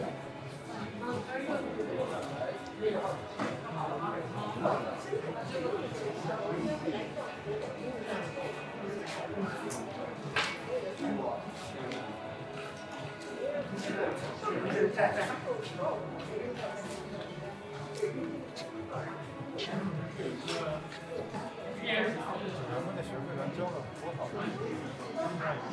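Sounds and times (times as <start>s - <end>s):
crowd of overlapping voices in an Apple store: 0.0s - 25.7s.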